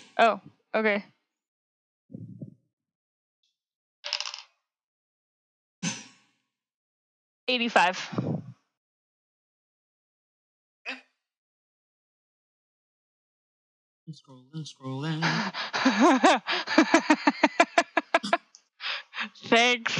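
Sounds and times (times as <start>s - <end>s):
speech: 0.2s - 1.2s, 2.1s - 2.4s, 7.5s - 8.4s, 14.1s - 18.4s, 19.4s - 19.9s
percentile dice being rolled: 4.1s - 4.5s
laughter: 14.6s - 19.9s.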